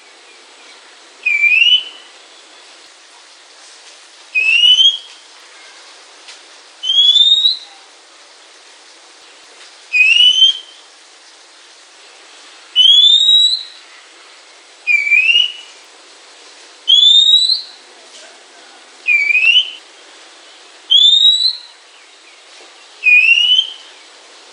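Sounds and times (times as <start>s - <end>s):
Oriental magpie-robin calls: 1.2s - 2.1s, 4.4s - 5.2s, 6.8s - 7.7s, 9.9s - 10.8s, 12.8s - 13.8s, 14.9s - 15.7s, 16.9s - 17.8s, 19.1s - 19.8s, 20.9s - 21.8s, 23.0s - 23.9s.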